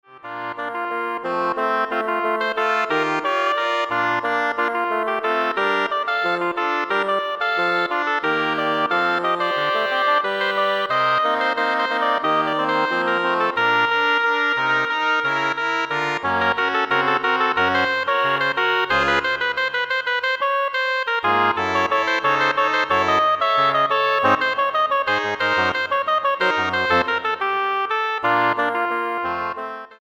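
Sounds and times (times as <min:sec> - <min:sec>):
double reed ensemble: 0:00.6 - 0:29.9.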